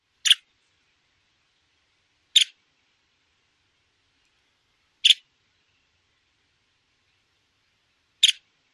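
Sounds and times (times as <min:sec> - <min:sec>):
calls: 0:05.0 - 0:05.3, 0:08.2 - 0:08.4.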